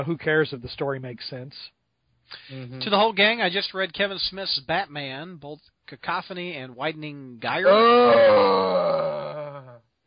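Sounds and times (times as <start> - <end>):
speech: 0.0 - 9.4
man moaning: 7.6 - 9.8.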